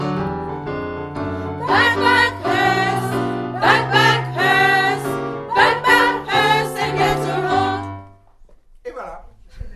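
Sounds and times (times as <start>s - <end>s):
sopranos singing: 1.4s - 8.1s.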